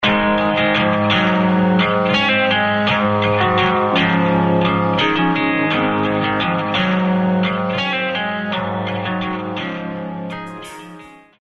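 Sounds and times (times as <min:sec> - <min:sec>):
ringtone: 0:00.1 - 0:11.4.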